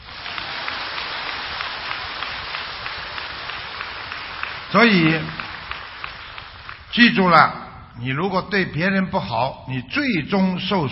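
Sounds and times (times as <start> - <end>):
audience applause: 0.0 - 7.1
speech: 4.7 - 5.4, 6.9 - 10.9.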